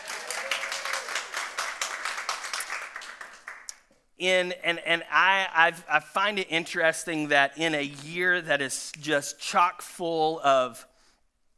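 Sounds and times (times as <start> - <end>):
audience clapping: 0.0 - 3.9
speech: 4.2 - 10.9.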